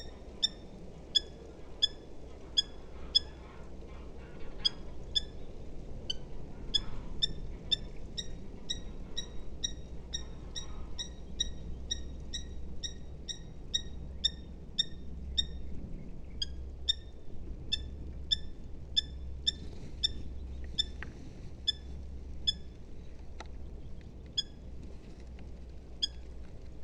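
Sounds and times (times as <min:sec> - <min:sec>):
Eurasian hobby calling: 0:00.0 - 0:05.5, 0:06.1 - 0:15.6, 0:16.4 - 0:22.8
low steady hum: 0:00.0 - 0:26.8.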